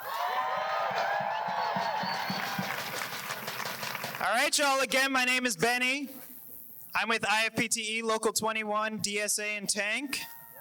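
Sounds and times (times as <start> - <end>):
crowd cheering and applauding: 0.0 - 4.3
speech: 4.2 - 6.2, 6.9 - 10.3.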